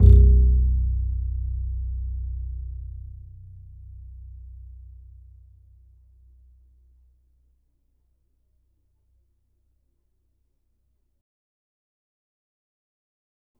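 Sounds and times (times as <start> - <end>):
upright acoustic bass in E: 0.0 - 6.8.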